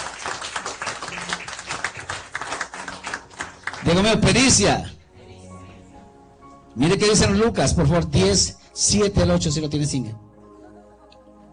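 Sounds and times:
audience applause: 0.0s - 4.2s
speech: 3.8s - 5.0s, 6.8s - 10.3s.

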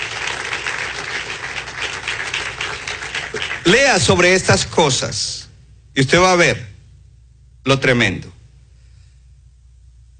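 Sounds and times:
audience applause: 0.0s - 4.3s
speech: 3.7s - 5.4s, 6.0s - 6.7s, 7.6s - 8.4s.

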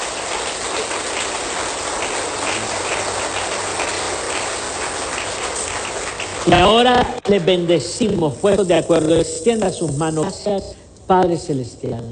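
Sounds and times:
audience applause: 0.0s - 8.5s
speech: 6.4s - 12.1s.

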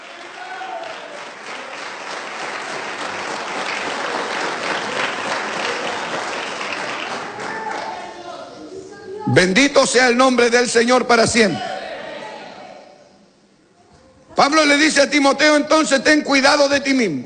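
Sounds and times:
crowd applause in praise: 0.0s - 8.3s
speech: 9.3s - 11.7s, 14.4s - 17.2s.

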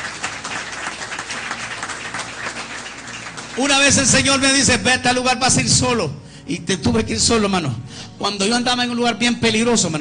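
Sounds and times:
audience applauding: 0.0s - 4.7s
speech: 3.6s - 9.9s.

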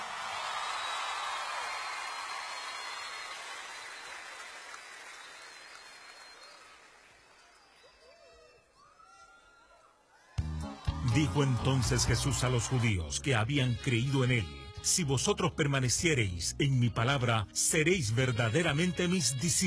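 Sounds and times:
audience applause: 0.0s - 8.2s, 10.8s - 13.0s
speech: 11.2s - 19.6s.

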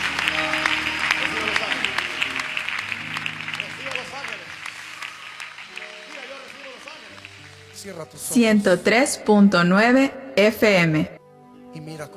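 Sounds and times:
church congregation applauding: 0.0s - 8.7s
speech: 7.8s - 11.1s.

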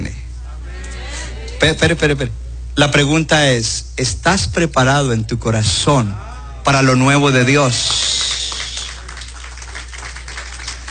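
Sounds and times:
speech: 1.6s - 8.1s
crowd clapping: 7.4s - 10.8s.

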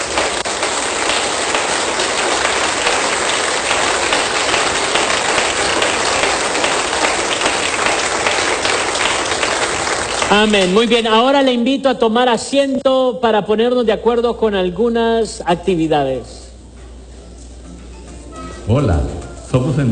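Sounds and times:
audience applause: 0.0s - 11.2s
speech: 10.3s - 16.5s, 18.7s - 19.8s.

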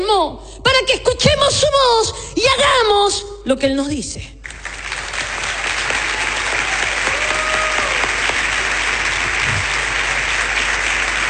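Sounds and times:
speech: 0.2s - 4.4s
audience applause: 4.4s - 11.2s.

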